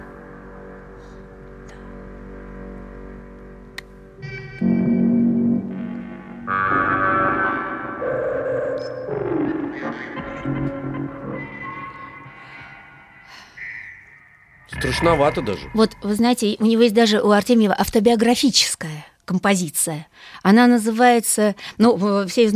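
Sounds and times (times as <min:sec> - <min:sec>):
electronic synthesizer variations on pure tone: 0:04.2 - 0:16.7
speech: 0:14.8 - 0:22.5.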